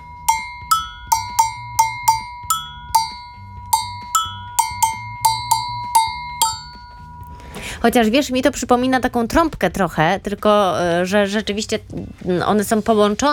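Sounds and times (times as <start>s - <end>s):
agogo bells ringing in a syncopated rhythm: 0.0s - 7.7s
speech: 7.8s - 13.3s.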